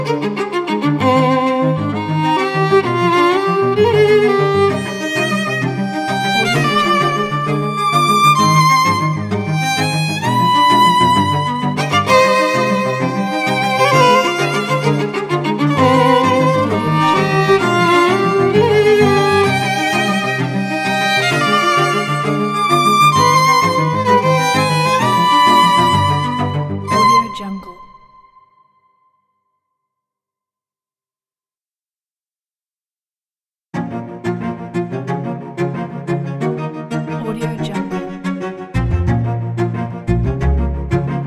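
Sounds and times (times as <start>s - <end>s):
expressive cellos playing: 0.0s - 28.0s, 33.8s - 41.2s.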